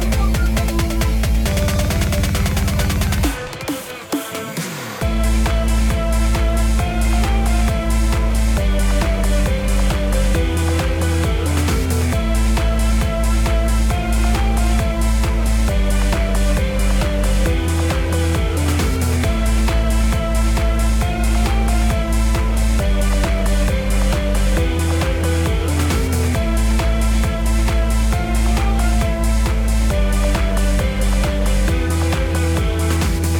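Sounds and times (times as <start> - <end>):
buzzy woods loop: 0.0 - 33.3.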